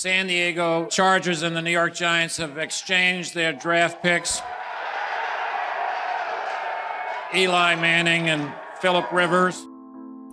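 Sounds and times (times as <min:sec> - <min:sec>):
speech: 0:00.0 - 0:04.6, 0:07.3 - 0:09.7
crowd cheering at draft announcement: 0:02.0 - 0:09.6.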